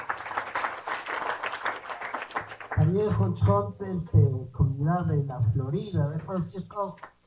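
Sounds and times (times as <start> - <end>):
community members applauding at a gathering: 0.0 - 3.3
speech: 2.9 - 7.2.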